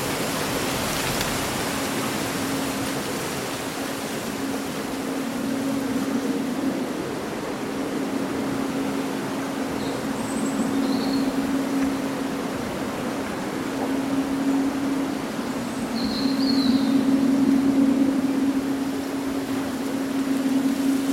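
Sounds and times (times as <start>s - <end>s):
low continuous hum: 0.0s - 21.1s
summer wind rustling through leaves: 0.0s - 21.1s.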